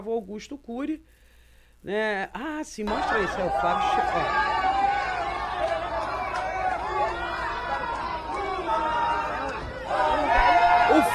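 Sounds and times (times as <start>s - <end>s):
speech: 0.0s - 4.9s
crowd shouting chants at arrival: 2.9s - 11.1s.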